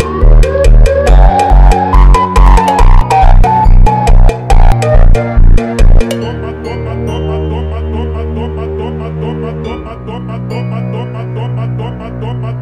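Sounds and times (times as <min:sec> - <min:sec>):
funk music: 0:00.0 - 0:08.2.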